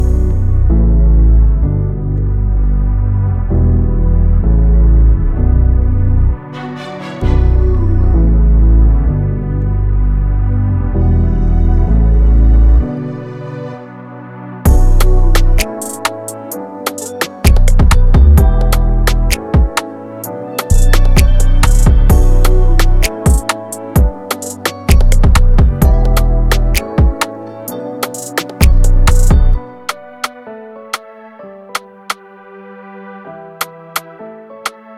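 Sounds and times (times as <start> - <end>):
instrumental music: 0.0 - 34.9.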